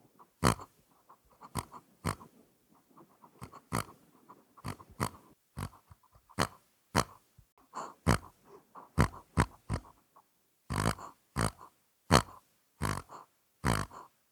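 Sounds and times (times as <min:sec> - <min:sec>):
pig giving deep snorting grunts: 0:00.4 - 0:00.8, 0:01.4 - 0:02.3, 0:03.2 - 0:04.0, 0:04.6 - 0:07.2, 0:07.8 - 0:10.0, 0:10.7 - 0:14.0.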